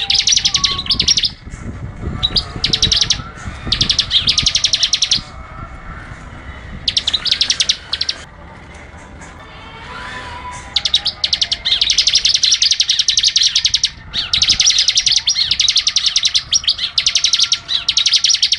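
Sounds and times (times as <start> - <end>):
bird song of rapid high-pitched chirping notes: 0.0 - 1.5, 2.1 - 5.4, 6.8 - 8.3, 10.6 - 18.5.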